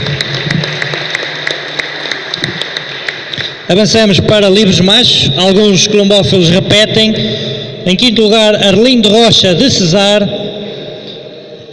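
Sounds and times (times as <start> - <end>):
applause: 0.0 - 3.7
speech: 3.7 - 10.5.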